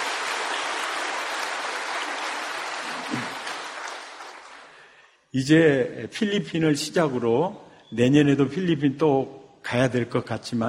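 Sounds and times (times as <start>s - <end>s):
audience applauding: 0.0s - 5.0s
speech: 5.3s - 10.6s.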